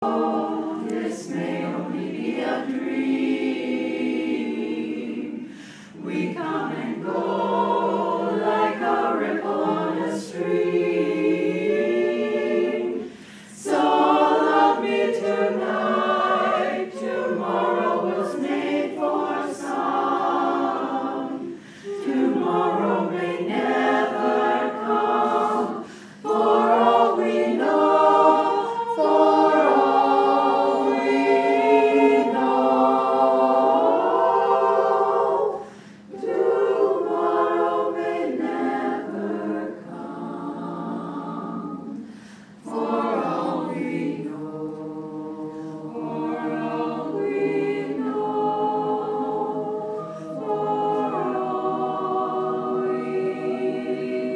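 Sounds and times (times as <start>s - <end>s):
a cappella singing: 0.0s - 54.3s.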